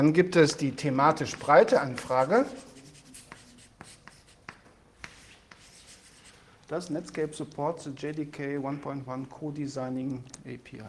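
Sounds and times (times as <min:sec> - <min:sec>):
speech: 0:00.0 - 0:02.7, 0:06.7 - 0:10.8
handwriting of notes on a discussion: 0:02.0 - 0:06.3.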